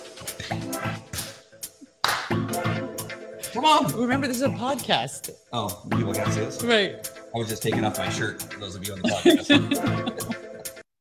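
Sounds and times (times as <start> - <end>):
speech: 0.5 - 1.0, 3.6 - 10.4
audience clapping hands: 2.0 - 2.5
laughter: 9.0 - 10.4.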